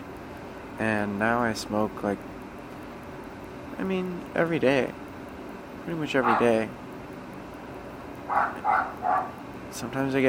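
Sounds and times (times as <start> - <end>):
speech: 0.8 - 2.4, 3.8 - 5.0, 5.8 - 6.8, 8.3 - 10.2
dog barking: 6.2 - 6.6, 8.3 - 9.4.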